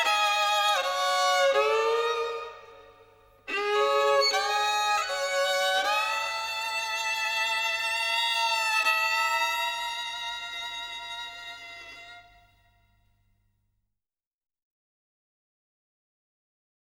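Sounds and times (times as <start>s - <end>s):
violin solo: 0.0s - 12.9s.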